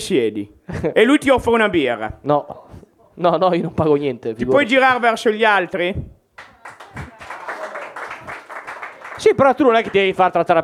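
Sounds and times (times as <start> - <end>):
speech: 0.0 - 6.8, 9.2 - 10.6
comedy night audience clapping: 6.4 - 10.4.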